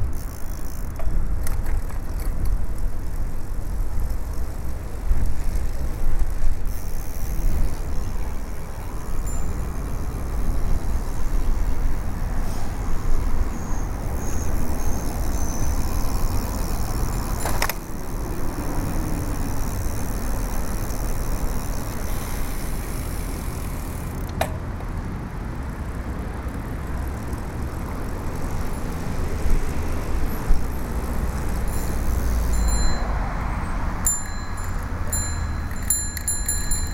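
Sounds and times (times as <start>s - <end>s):
bicycle: 0.0s - 36.9s.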